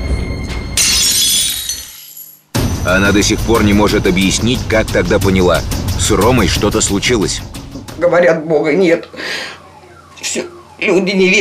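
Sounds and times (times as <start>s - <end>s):
plate falling and shattering: 0.8s - 2.5s
speech: 2.9s - 9.6s, 10.2s - 11.3s.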